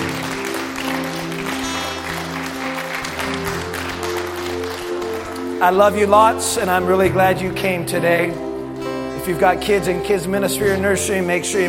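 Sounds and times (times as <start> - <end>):
audience clapping: 0.0 - 5.8
speech: 5.6 - 8.4, 9.2 - 11.6.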